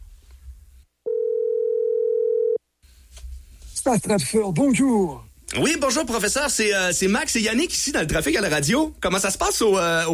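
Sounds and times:
telephone ringing tone on outgoing call: 1.0s - 2.6s
speech: 3.9s - 10.1s.

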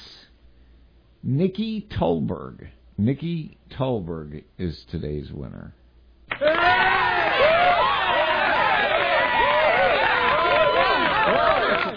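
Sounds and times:
speech: 1.2s - 5.8s
applause and cheering sound effect: 6.3s - 11.9s.

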